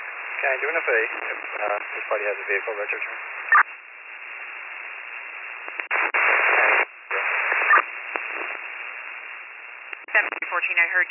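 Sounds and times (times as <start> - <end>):
speech: 0.4 - 3.6, 10.2 - 11.0
unreadable garbled radio transmission with static: 0.4 - 3.7, 5.6 - 8.7, 10.0 - 11.0.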